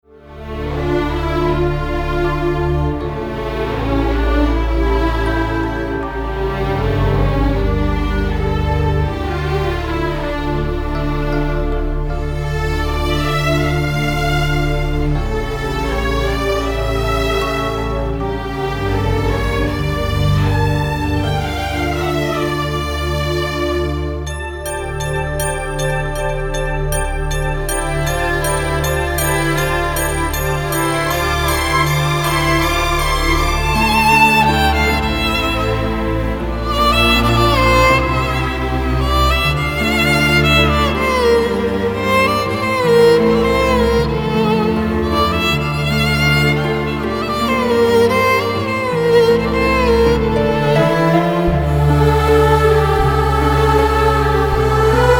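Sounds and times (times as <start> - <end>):
instrumental music: 0.0 - 55.1.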